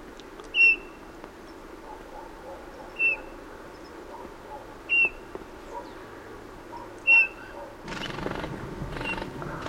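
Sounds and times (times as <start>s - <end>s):
bird piping whistles: 0.5s - 1.0s, 3.0s - 3.4s, 4.9s - 5.3s, 7.0s - 8.2s
bird's wings flapping as it flies off: 7.9s - 9.6s.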